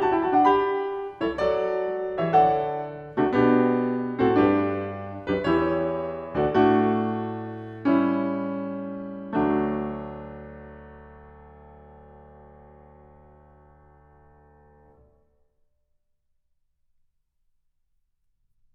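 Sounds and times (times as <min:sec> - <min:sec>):
keyboard fugue in D major: 0:00.0 - 0:11.5.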